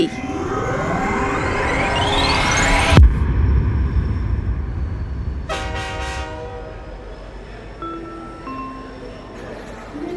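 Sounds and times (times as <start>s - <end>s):
rising whine: 0.0s - 8.3s
train rumbling along: 2.9s - 9.6s
train horn blast: 5.5s - 7.1s.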